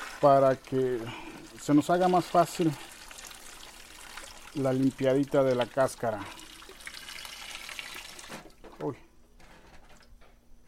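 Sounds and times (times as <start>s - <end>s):
cold water poured over pacaya palm flowers: 0.0s - 8.4s
speech: 0.2s - 2.9s, 4.5s - 6.4s, 8.8s - 9.0s.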